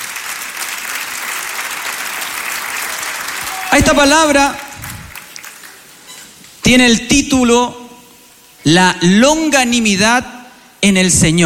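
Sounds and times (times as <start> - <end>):
audience applauding: 0.0 - 6.1
speech: 3.7 - 4.6, 6.7 - 7.8, 8.6 - 11.4.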